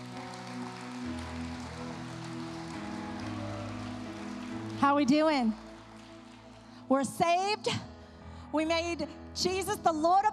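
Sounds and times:
crowd clapping: 0:00.0 - 0:07.1
scattered cheers: 0:02.6 - 0:05.2
speech: 0:04.8 - 0:05.6, 0:06.9 - 0:07.9, 0:08.5 - 0:10.3.

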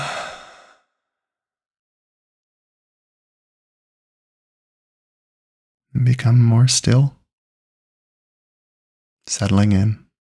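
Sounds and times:
soft breathy exhale during a guided bedtime relaxation: 0:00.0 - 0:00.8
speech: 0:05.9 - 0:07.2, 0:09.3 - 0:10.0.

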